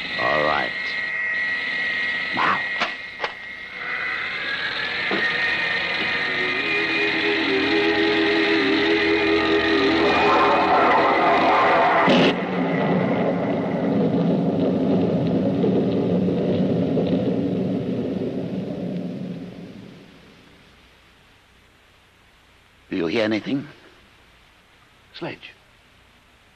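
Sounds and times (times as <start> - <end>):
heavy mechanical drills rumbling with a droning whine: 0.0 - 18.6
speech: 23.3 - 23.7.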